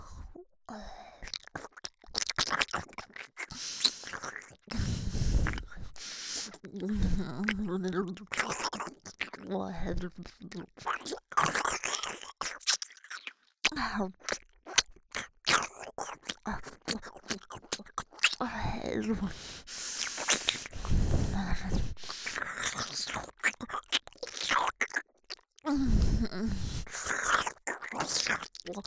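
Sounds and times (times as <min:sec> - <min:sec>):
ear licking on the left ear: 0:01.2 - 0:09.5, 0:10.1 - 0:13.5, 0:14.2 - 0:28.8
nose breathing in the left ear: 0:03.4 - 0:06.6, 0:19.3 - 0:22.8, 0:25.7 - 0:27.1.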